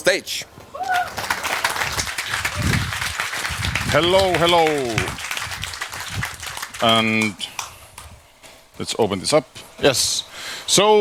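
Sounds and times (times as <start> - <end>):
speech: 0.0 - 1.0, 3.9 - 5.2, 6.8 - 7.4, 8.8 - 11.0
audience at a talk applauding to welcome a speaker on stage: 0.8 - 8.2.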